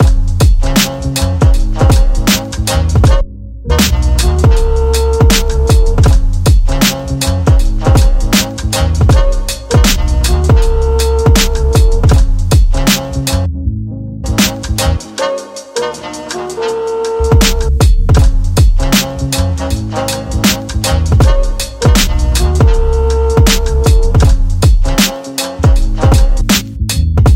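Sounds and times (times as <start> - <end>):
kick drums: 0.0 - 0.8, 1.4 - 2.4, 3.0 - 3.2, 4.4 - 6.9, 7.5 - 8.4, 9.0 - 13.0, 17.3 - 19.0, 21.1 - 22.8, 23.4 - 25.0, 25.6 - 26.6
snare drums: 0.0 - 3.2, 3.8 - 13.4, 14.4 - 27.3.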